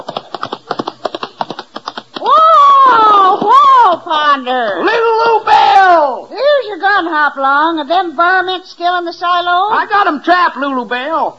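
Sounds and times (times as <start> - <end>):
horse hooves galloping: 0.0 - 4.1
speech: 4.2 - 6.2, 6.8 - 11.3.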